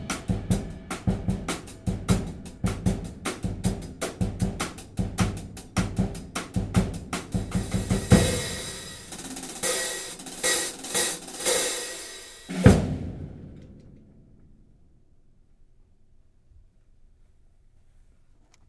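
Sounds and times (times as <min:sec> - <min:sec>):
15 inch hi-hat cymbal: 0:00.0 - 0:13.6.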